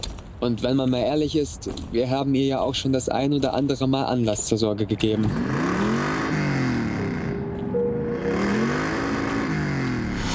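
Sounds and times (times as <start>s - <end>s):
speech: 0.4s - 5.8s
car engine droning and revving at night: 5.2s - 10.3s.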